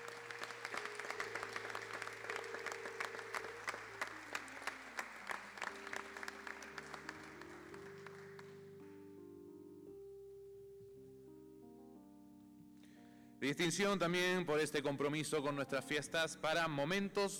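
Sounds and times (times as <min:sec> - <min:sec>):
audience applause: 0:00.0 - 0:08.7
speech: 0:13.4 - 0:17.3.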